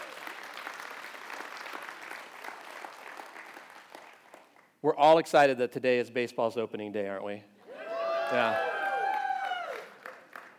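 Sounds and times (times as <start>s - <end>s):
audience applause: 0.0s - 4.5s, 8.2s - 10.5s
speech: 4.8s - 7.5s, 8.3s - 8.8s.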